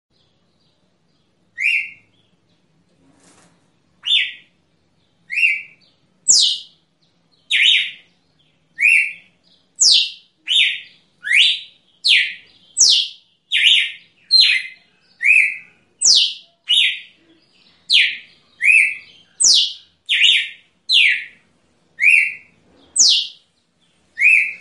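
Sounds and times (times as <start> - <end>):
female red-cowled cardinal singing in nature: 1.6 - 2.1, 4.0 - 4.5, 5.3 - 6.8, 7.4 - 8.1, 8.7 - 17.2, 17.8 - 21.4, 22.0 - 23.4, 24.1 - 24.5.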